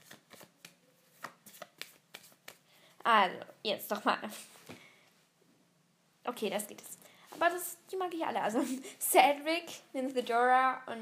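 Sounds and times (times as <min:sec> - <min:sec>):
deck of character cards shuffled by hand for a tabletop game: 0:00.0 - 0:02.7
speech: 0:03.1 - 0:04.5, 0:06.3 - 0:11.0.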